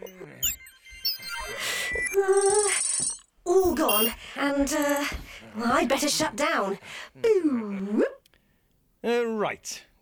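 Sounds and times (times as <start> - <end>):
phone ringtone: 0.0 - 4.1
speech: 3.8 - 8.1, 9.0 - 10.0.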